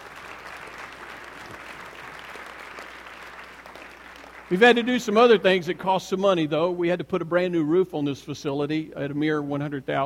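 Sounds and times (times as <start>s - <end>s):
audience applause: 0.0s - 5.6s
speech: 4.5s - 10.0s.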